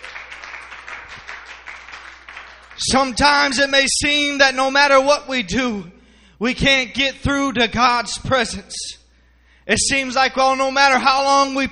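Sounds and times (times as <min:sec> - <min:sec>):
church congregation clapping hands in praise: 0:00.0 - 0:03.8
speech: 0:02.8 - 0:09.0, 0:09.7 - 0:11.7.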